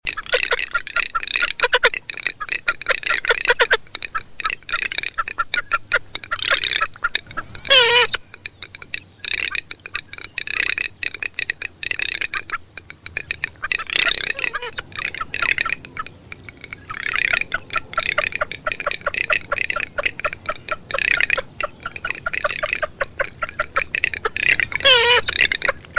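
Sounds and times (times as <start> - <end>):
garganey giving dry crackling rattles: 0.1 - 25.9.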